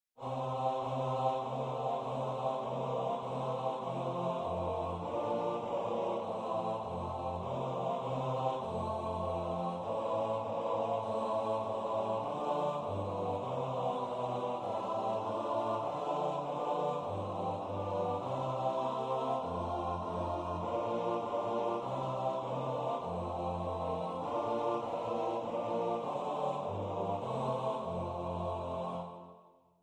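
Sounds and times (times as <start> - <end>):
bass part of a Danish Christmas song: 0.2 - 29.4.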